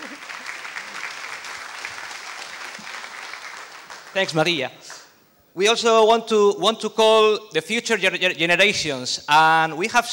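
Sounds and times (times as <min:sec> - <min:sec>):
audience applause: 0:00.0 - 0:05.1
speech: 0:04.2 - 0:04.8, 0:05.6 - 0:10.1.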